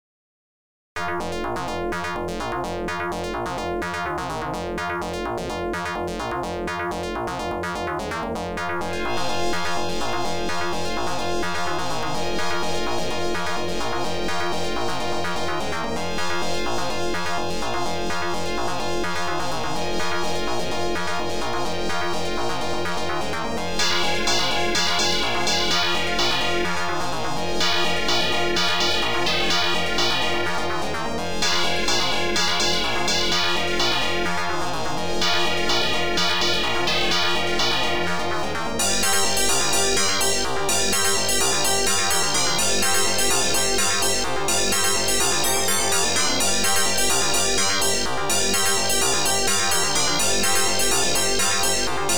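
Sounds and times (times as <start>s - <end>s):
OPL2 FM synth chip music: 1.0s - 52.1s.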